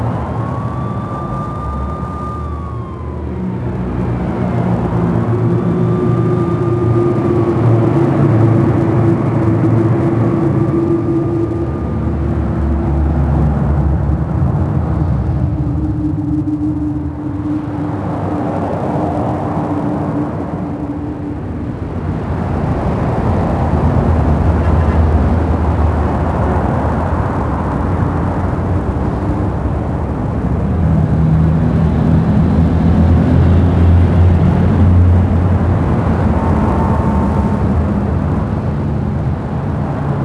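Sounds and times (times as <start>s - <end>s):
city ambience noise: 0.0s - 40.2s.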